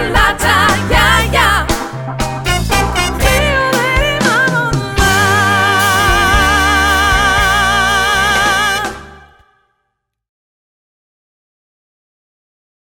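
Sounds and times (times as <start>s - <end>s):
dance band playing: 0.0s - 9.4s.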